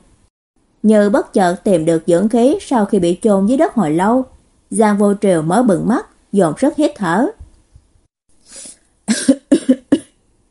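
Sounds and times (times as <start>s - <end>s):
speech: 0.8s - 7.4s, 8.5s - 9.3s
dry coughing: 9.1s - 10.2s.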